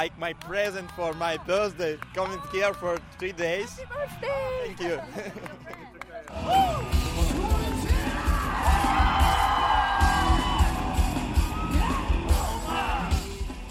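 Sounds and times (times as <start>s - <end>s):
rock concert crowd cheering: 0.0s - 2.8s, 6.3s - 13.6s
rock concert crowd clapping: 0.0s - 3.4s, 5.2s - 11.5s
speech: 0.0s - 7.0s
laughter: 4.8s - 6.2s.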